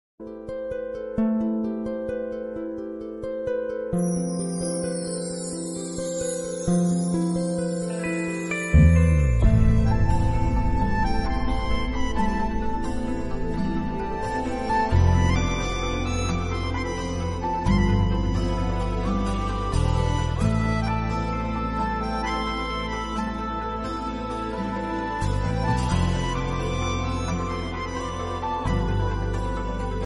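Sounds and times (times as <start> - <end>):
instrumental music: 0.2 - 30.0.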